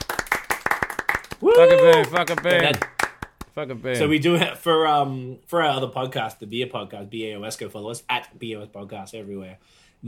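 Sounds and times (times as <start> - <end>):
round of applause sound effect: 0.0 - 3.6
speech: 1.4 - 2.9, 3.6 - 10.0.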